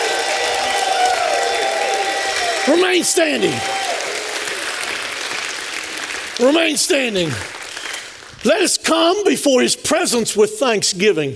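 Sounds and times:
audience shouting praise: 0.0s - 7.6s
audience clapping: 0.0s - 9.2s
speech: 2.6s - 4.1s, 6.4s - 7.6s, 8.4s - 11.3s.

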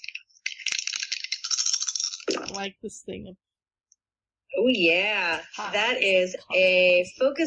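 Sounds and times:
dice rolling: 0.8s - 2.5s
speech: 2.6s - 3.5s, 4.5s - 7.4s.

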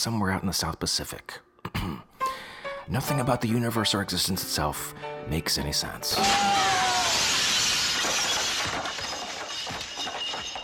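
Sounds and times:
speech: 0.0s - 1.9s, 2.9s - 6.8s
glass shattering: 6.2s - 10.6s
tinkling glass shards: 6.6s - 10.6s.

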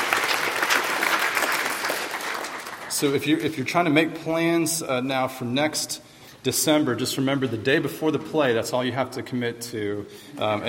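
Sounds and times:
audience applause after a church Christmas play: 0.0s - 3.2s
speech: 3.0s - 10.6s.

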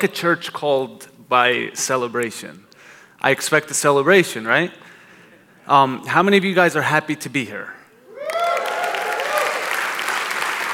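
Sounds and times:
speech: 0.0s - 4.9s, 5.6s - 7.8s
crowd cheering: 8.0s - 10.7s
audience applause: 8.2s - 10.7s.

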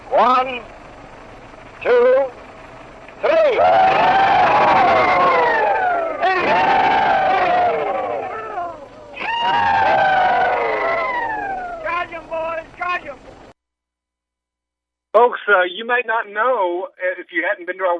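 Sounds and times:
speech: 0.2s - 0.8s, 1.8s - 2.4s, 3.2s - 4.2s, 15.2s - 17.9s
old veterans performing rebel yell: 3.2s - 12.1s.

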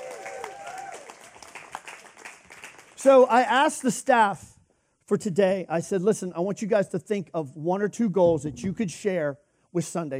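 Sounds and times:
people cheering woo: 0.0s - 1.2s
crowd clapping: 0.0s - 3.1s
speech: 3.0s - 4.5s, 5.1s - 10.1s.

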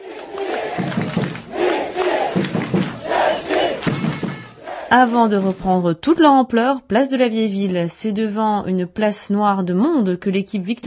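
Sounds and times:
cheering crowd of hockey fans: 0.0s - 5.6s
speech: 4.9s - 10.8s.

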